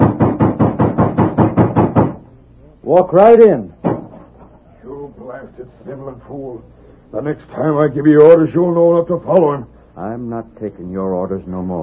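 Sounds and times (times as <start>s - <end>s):
heavy knocks on a door: 0.0s - 2.2s
speech: 2.9s - 3.8s, 6.0s - 11.8s.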